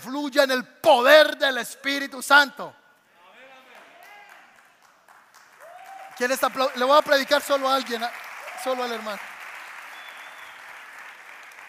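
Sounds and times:
speech: 0:00.0 - 0:02.8, 0:06.2 - 0:09.3
church audience applauding: 0:03.7 - 0:11.6.

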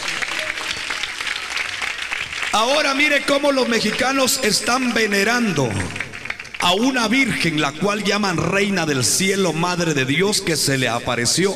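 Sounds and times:
audience clapping: 0:00.0 - 0:08.0
speech: 0:02.5 - 0:11.5.

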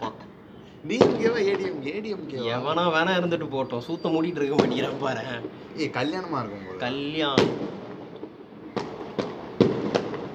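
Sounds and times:
firecrackers bursting outside: 0:00.0 - 0:10.3
speech: 0:00.8 - 0:07.7.

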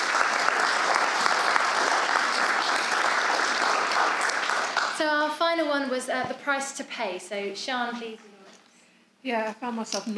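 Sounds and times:
audience applause: 0:00.0 - 0:05.0
speech: 0:05.0 - 0:08.3, 0:09.2 - 0:10.1.

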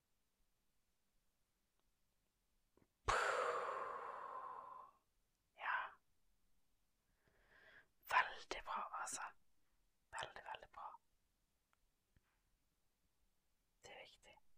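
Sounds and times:
deep breath during breathing exercise: 0:03.1 - 0:05.0, 0:07.1 - 0:07.9
soft whispery breaths: 0:03.1 - 0:05.0, 0:05.6 - 0:06.0, 0:07.1 - 0:09.4, 0:10.1 - 0:11.0, 0:13.8 - 0:14.5.

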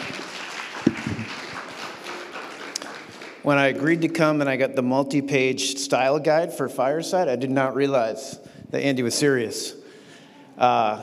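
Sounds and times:
scattered audience applause: 0:00.0 - 0:04.1
speech: 0:00.9 - 0:01.2, 0:03.4 - 0:09.8, 0:10.6 - 0:11.0.

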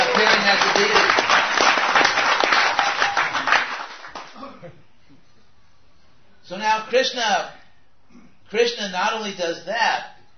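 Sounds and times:
audience applause: 0:00.0 - 0:04.4
speech: 0:06.9 - 0:07.6, 0:08.5 - 0:10.1.

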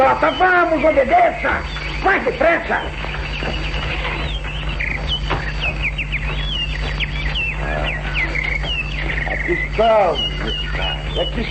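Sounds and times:
caged birds chirping: 0:00.0 - 0:11.4
steady low hum: 0:00.0 - 0:11.4
speech: 0:00.1 - 0:03.7, 0:09.5 - 0:11.4.

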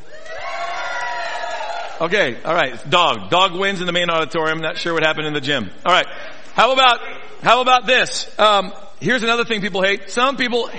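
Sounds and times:
audience cheering and shouting: 0:00.0 - 0:02.2
speech: 0:02.0 - 0:10.7.

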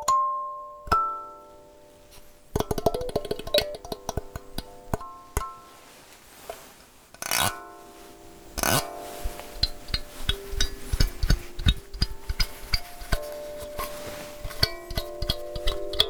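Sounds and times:
kalimba playing plucked notes: 0:00.1 - 0:05.7, 0:08.6 - 0:16.0
sharp clicks and rattles: 0:02.0 - 0:05.6, 0:08.4 - 0:16.0.

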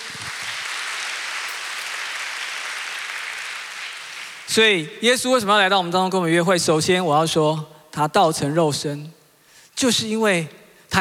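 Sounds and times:
audience applause: 0:00.0 - 0:04.6
speech: 0:04.5 - 0:09.2, 0:09.8 - 0:11.0.

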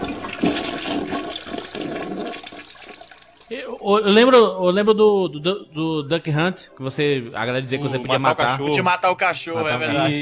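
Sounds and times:
toilet flushing: 0:00.0 - 0:03.5
speech: 0:03.5 - 0:10.2.

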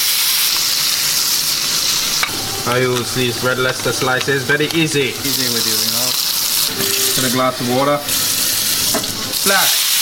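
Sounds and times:
burger patty sizzling in a pan: 0:00.0 - 0:09.9
speech: 0:02.7 - 0:06.0, 0:06.8 - 0:08.2, 0:09.4 - 0:09.8.

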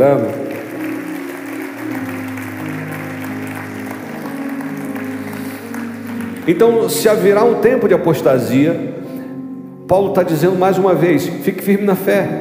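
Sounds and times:
speech: 0:00.0 - 0:00.6, 0:06.4 - 0:08.9, 0:09.9 - 0:12.4
applause: 0:00.0 - 0:07.4.

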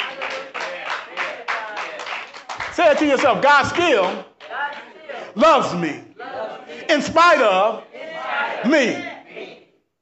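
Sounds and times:
audience clapping: 0:00.0 - 0:05.2
speech: 0:02.8 - 0:04.3, 0:05.4 - 0:06.1, 0:06.9 - 0:07.9, 0:08.6 - 0:09.1.

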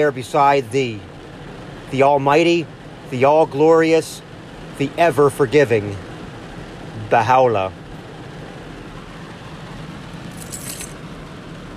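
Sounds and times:
speech: 0:00.0 - 0:01.1, 0:01.9 - 0:06.1, 0:07.0 - 0:07.8
heavy rain falling: 0:00.0 - 0:11.7
bright metallic jingle: 0:10.3 - 0:11.0.

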